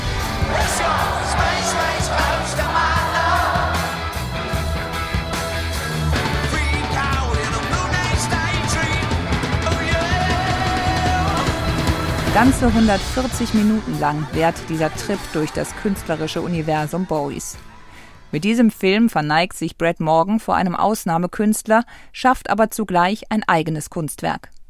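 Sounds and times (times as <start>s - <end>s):
excited concert crowd cheering and singing along: 0.0s - 16.8s
live music: 0.0s - 18.1s
speech: 12.4s - 17.7s, 18.3s - 24.6s.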